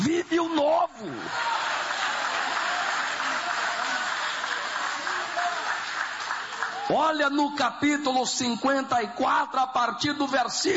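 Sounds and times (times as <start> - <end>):
speech: 0.2 - 1.5, 6.9 - 10.7
audience applauding: 1.2 - 7.0.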